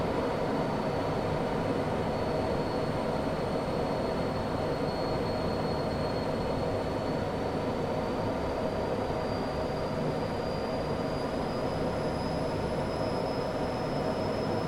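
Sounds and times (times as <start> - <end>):
1947 Gloster Meteor F Mk8 fighter jet interior on approach: 0.0 - 14.6.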